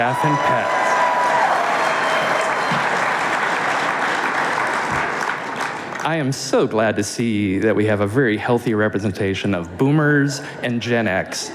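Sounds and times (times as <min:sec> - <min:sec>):
speech: 0:00.0 - 0:00.8, 0:06.0 - 0:11.5
audience applause: 0:00.0 - 0:06.3.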